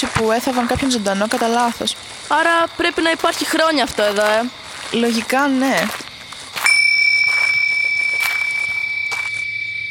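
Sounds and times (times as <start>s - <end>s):
speech: 0.0s - 6.0s
soft rustling: 0.0s - 9.6s
faint footsteps: 0.0s - 9.8s
small bell ringing: 6.5s - 9.8s.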